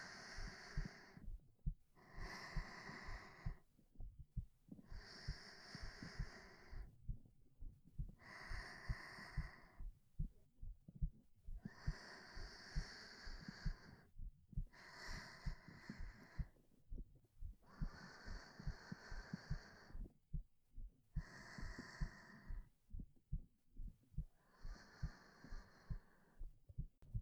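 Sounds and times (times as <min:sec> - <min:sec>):
sleeping breath: 0:00.0 - 0:01.2, 0:02.0 - 0:03.6, 0:04.9 - 0:06.9, 0:11.6 - 0:14.1, 0:14.7 - 0:16.6, 0:17.6 - 0:20.1, 0:21.2 - 0:22.7, 0:24.4 - 0:26.5
heartbeat: 0:00.0 - 0:27.2.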